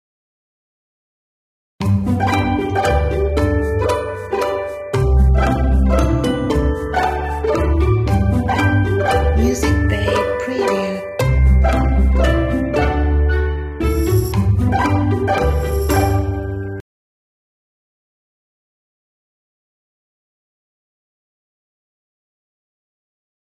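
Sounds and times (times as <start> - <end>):
commercial background music: 1.8 - 16.8.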